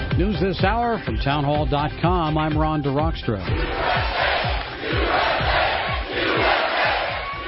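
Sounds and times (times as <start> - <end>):
speech: 0.2 - 4.6
enthusiastic crowd cheering at a rally: 3.4 - 7.4.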